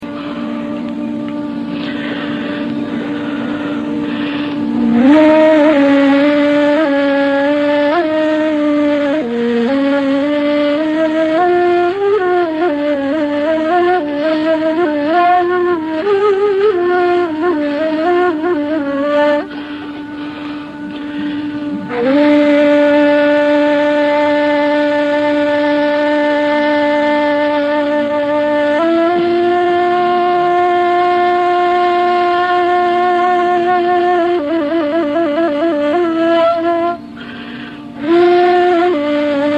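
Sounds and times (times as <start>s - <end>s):
ney taksim improvisation in Penjgah: 0.0s - 39.5s.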